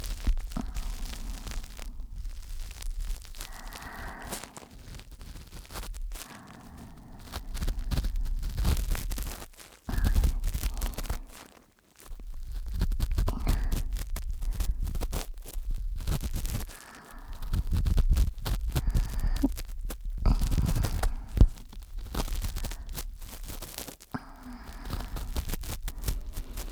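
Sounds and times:
ASMR ear cleaning sounds in the left ear for sleep: 0:00.0 - 0:26.7.

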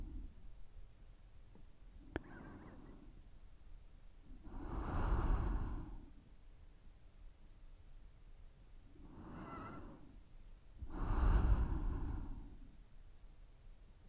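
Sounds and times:
sleeping breath: 0:02.2 - 0:03.2, 0:04.4 - 0:06.2, 0:09.0 - 0:10.2, 0:10.8 - 0:12.8.

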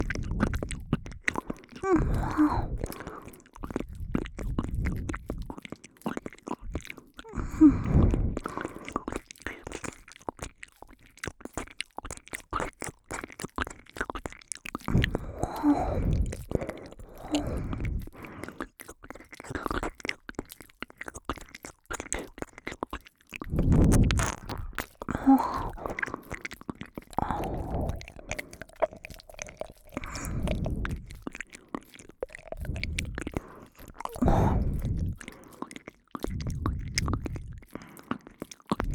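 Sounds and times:
ear licking sounds in right channel: 0:00.0 - 0:38.9.

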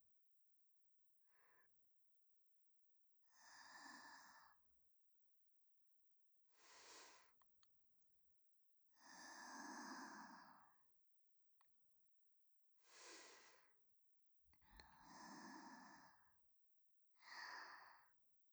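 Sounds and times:
person breathing in sleep in the left channel: 0:03.4 - 0:04.6, 0:06.6 - 0:07.4, 0:09.0 - 0:10.7, 0:12.9 - 0:13.7, 0:14.7 - 0:16.3, 0:17.2 - 0:18.2.

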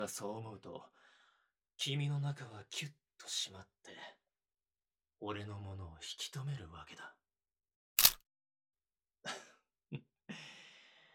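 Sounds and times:
speech: 0:00.0 - 0:01.0, 0:01.8 - 0:04.2, 0:05.2 - 0:07.2, 0:09.2 - 0:10.5
camera shutter clicks: 0:08.0 - 0:08.2.

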